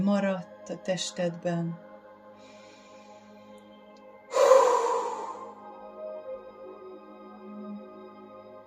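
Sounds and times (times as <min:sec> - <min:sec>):
speech: 0:00.0 - 0:01.9
soft sustained music tones: 0:00.0 - 0:08.6
deep breath in and out during a guided relaxation exercise: 0:02.3 - 0:03.5, 0:04.3 - 0:05.7.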